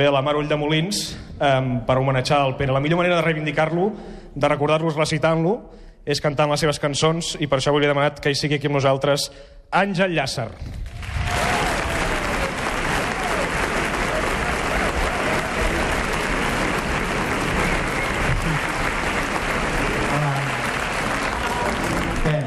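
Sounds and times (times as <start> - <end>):
speech: 0.0 - 11.5
audience applause: 10.7 - 22.4
faint crowd noise: 11.0 - 22.4.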